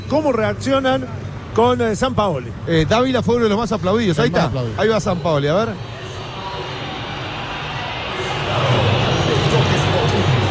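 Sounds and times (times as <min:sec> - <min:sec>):
speech: 0:00.1 - 0:06.0
crowd murmuring: 0:04.3 - 0:10.5.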